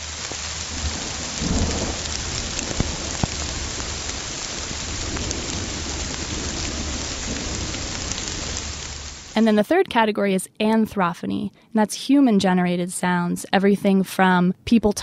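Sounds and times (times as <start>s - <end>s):
rainstorm: 0.0s - 9.7s
speech: 9.4s - 15.0s.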